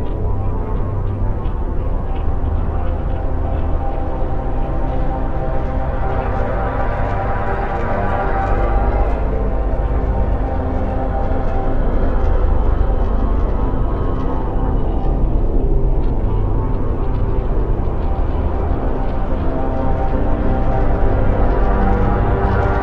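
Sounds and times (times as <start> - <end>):
horror synth drone: 0.0 - 22.8.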